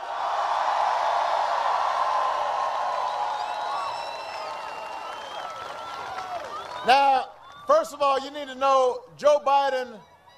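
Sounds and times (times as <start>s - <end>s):
large crowd clapping and cheering: 0.0s - 7.9s
high whistles: 3.0s - 7.8s
speech: 6.8s - 10.1s.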